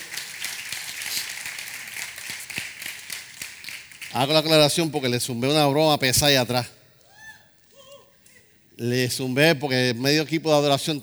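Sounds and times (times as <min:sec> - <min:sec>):
audience applause: 0:00.0 - 0:04.3
speech: 0:04.1 - 0:06.8, 0:08.8 - 0:11.0.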